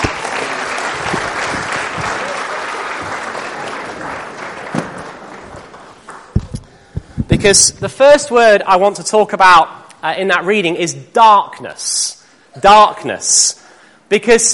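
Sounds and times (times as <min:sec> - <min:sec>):
audience round of applause: 0:00.0 - 0:06.6
speech: 0:07.4 - 0:14.5.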